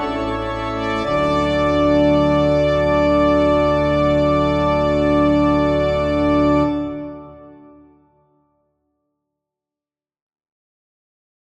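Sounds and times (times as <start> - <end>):
trumpet descant: 0.0 - 7.8
organ: 0.0 - 8.0.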